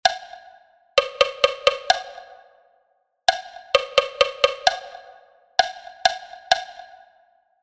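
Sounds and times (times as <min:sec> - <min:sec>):
rhythmic motif: 0:01.0 - 0:02.5, 0:03.3 - 0:06.8.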